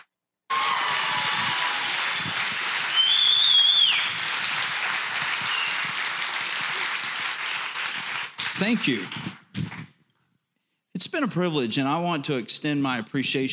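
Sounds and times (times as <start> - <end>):
men's conference church audience clapping to welcome a pastor to the podium: 0.0 - 10.0
shrill sustained whistle: 2.8 - 4.2, 5.3 - 6.0
speech: 8.6 - 9.3, 11.2 - 13.5.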